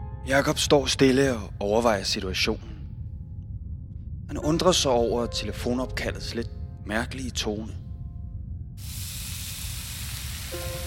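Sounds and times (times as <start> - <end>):
speech: 0.2 - 2.7, 4.3 - 7.8
onions sizzling in a frying pan: 8.8 - 10.8.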